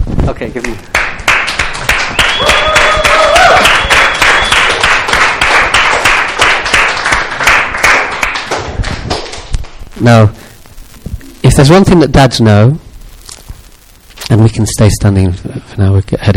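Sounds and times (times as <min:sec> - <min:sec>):
speech: 0:00.3 - 0:01.1, 0:10.0 - 0:10.4, 0:11.6 - 0:12.8, 0:14.3 - 0:16.3
audience standing applause: 0:00.6 - 0:09.8
whistles and cheers: 0:01.9 - 0:05.0.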